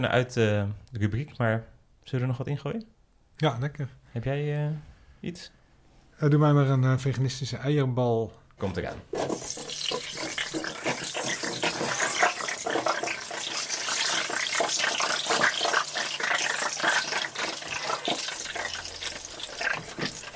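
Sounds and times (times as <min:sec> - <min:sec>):
speech: 0:00.0 - 0:05.6, 0:06.2 - 0:09.6
deep fryer sizzling: 0:09.1 - 0:20.3.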